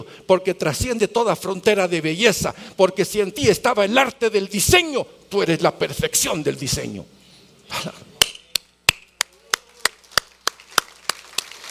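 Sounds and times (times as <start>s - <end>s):
speech: 0.1s - 8.1s
person clapping hands: 8.2s - 11.6s.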